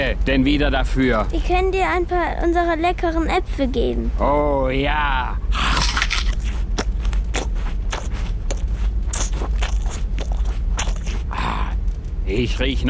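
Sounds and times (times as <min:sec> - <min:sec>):
speech: 0:00.1 - 0:06.0, 0:12.3 - 0:12.8
man biting and chewing gingerbread with its paper and string: 0:05.6 - 0:11.7.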